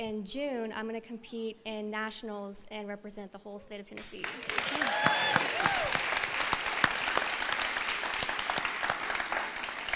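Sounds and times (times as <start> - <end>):
speech: 0.0 - 6.0
crowd applauding: 4.2 - 9.9
whoops and cheers: 4.4 - 6.2.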